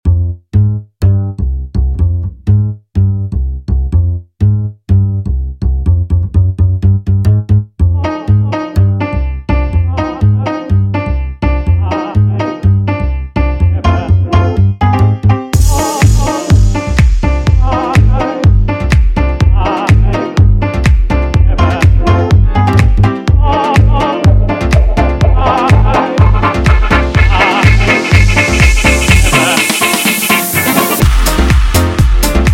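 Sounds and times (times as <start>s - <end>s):
electro swing music: 0.0s - 32.5s.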